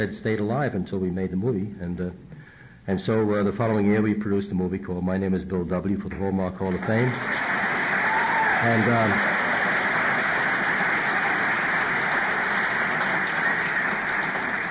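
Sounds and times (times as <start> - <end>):
speech: 0.0 - 2.3, 2.9 - 7.6, 8.6 - 9.3
audience applause: 6.8 - 14.6.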